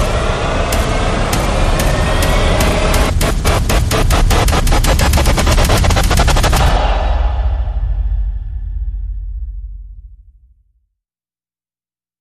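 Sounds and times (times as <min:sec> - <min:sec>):
sound effects: 0:00.0 - 0:09.5
percussion rises: 0:00.0 - 0:09.9.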